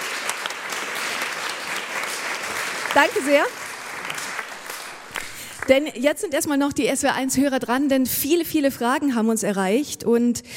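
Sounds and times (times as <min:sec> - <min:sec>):
audience applause: 0:00.0 - 0:05.9
speech: 0:03.0 - 0:04.3, 0:05.7 - 0:10.5.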